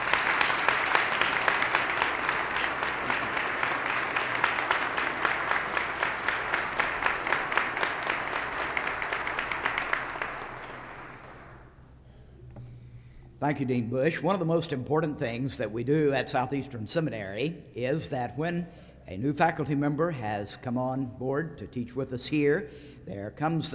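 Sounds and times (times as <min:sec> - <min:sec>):
audience applause for an award winner at a seminary ceremony: 0:00.0 - 0:11.6
speech: 0:13.5 - 0:23.7.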